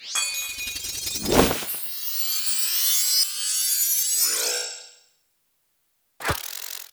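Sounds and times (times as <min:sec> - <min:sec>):
jingle: 0:00.0 - 0:05.0.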